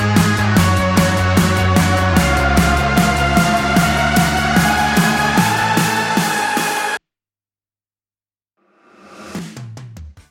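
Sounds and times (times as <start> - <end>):
karaoke backing track: 0.0 - 7.0.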